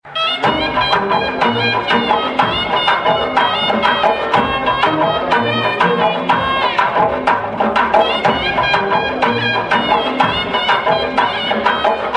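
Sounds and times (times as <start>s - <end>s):
tone: 0.0s - 12.1s.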